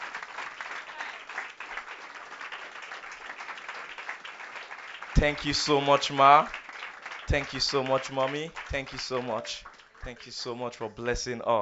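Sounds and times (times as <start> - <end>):
audience applause: 0.0 - 10.2
speech: 5.2 - 6.6, 7.3 - 11.5.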